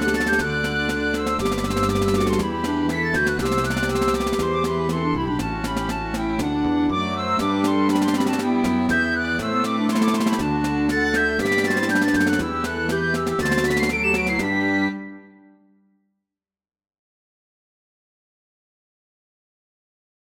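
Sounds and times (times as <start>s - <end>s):
bush dance music: 0.0s - 14.5s.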